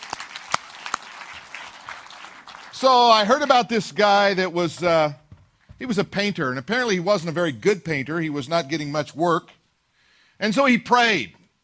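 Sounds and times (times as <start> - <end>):
crowd applauding: 0.0 - 3.7
speech: 2.8 - 5.2, 5.8 - 9.6, 10.4 - 11.4.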